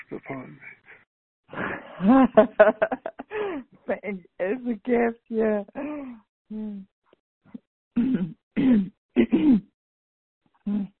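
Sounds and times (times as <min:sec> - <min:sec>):
speech: 0:00.1 - 0:00.8, 0:02.0 - 0:06.9
laughter: 0:01.6 - 0:03.4
throat clearing: 0:08.0 - 0:09.7, 0:10.6 - 0:10.9.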